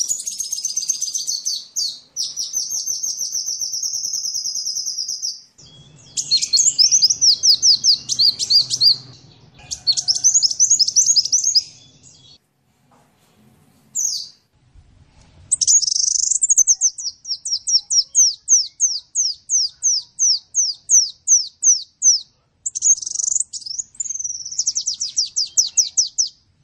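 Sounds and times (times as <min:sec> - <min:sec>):
bird singing: 0:00.0 - 0:12.4, 0:15.5 - 0:26.6.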